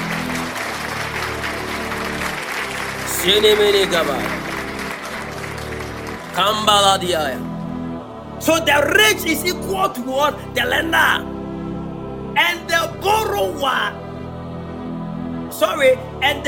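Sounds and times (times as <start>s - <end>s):
audience clapping: 0.0s - 7.4s
speech: 3.2s - 4.4s, 6.4s - 7.5s, 8.4s - 11.3s, 12.4s - 14.0s, 15.6s - 16.4s.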